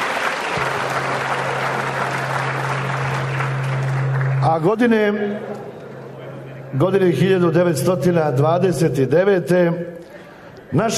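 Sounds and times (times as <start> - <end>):
audience applause at a ceremony honouring Serbia and its army: 0.0 - 4.7
low continuous electrical hum: 0.4 - 10.9
speech: 4.6 - 5.6, 6.7 - 9.9, 10.7 - 10.9.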